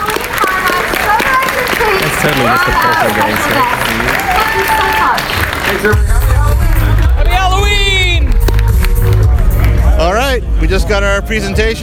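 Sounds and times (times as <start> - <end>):
audience cheering at a Halloween Horror Nights 29 opening-night presentation: 0.0 - 8.4
audience applause at a Halloween Horror Nights 29 opening-night presentation: 0.0 - 9.9
speech: 2.2 - 6.2, 10.0 - 11.8.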